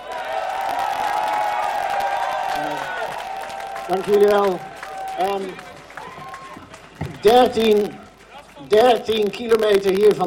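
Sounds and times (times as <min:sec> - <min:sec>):
audience cheering: 0:00.0 - 0:08.8
audience applause: 0:00.0 - 0:09.8
speech: 0:03.9 - 0:05.7, 0:07.2 - 0:08.0, 0:08.7 - 0:10.2.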